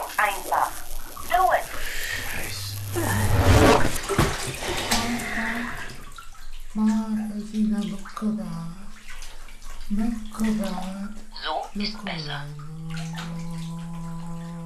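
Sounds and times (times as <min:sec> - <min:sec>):
voice-like tones: 0:00.0 - 0:00.7, 0:01.3 - 0:06.0, 0:06.8 - 0:09.0, 0:09.9 - 0:14.6
low hum: 0:00.0 - 0:09.0, 0:11.9 - 0:14.6
water sloshing and splashing in a bathtub as a radio is pulled out: 0:03.3 - 0:14.6
speech: 0:06.8 - 0:08.8, 0:09.9 - 0:10.9, 0:11.8 - 0:13.3.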